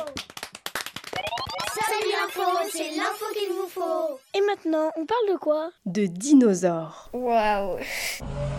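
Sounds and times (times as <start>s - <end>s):
audience applauding itself at a yearly event: 0.0s - 2.3s
speech: 2.0s - 8.4s.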